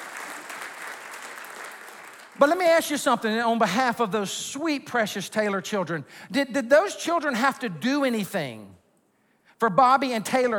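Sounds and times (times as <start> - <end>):
audience clapping: 0.0 - 2.7
speech: 2.4 - 8.8, 9.6 - 10.5.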